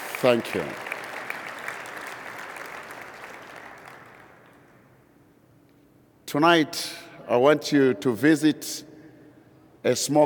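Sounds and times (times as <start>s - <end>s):
audience applause: 0.0s - 4.4s
speech: 0.2s - 0.9s, 6.3s - 8.9s, 9.8s - 10.2s.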